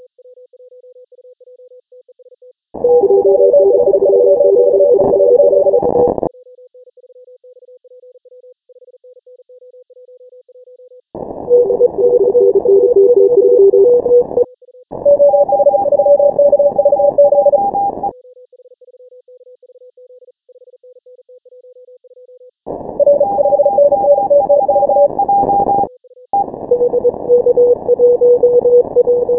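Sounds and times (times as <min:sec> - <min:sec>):
morse code beeps: 0:02.8 - 0:06.2, 0:11.5 - 0:14.4, 0:15.0 - 0:18.1, 0:23.0 - 0:29.3.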